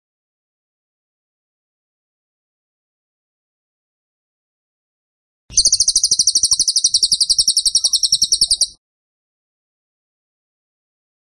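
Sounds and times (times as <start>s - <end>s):
bird rattling trill: 5.5s - 8.8s.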